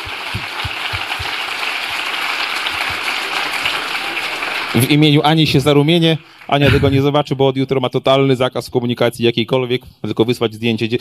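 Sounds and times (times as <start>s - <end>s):
group applause: 0.0s - 7.2s
speech: 4.7s - 10.9s.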